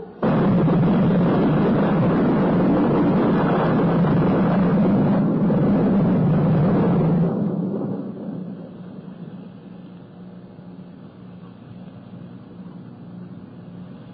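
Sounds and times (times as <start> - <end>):
rolling thunder during an electric storm: 0.2 - 9.8.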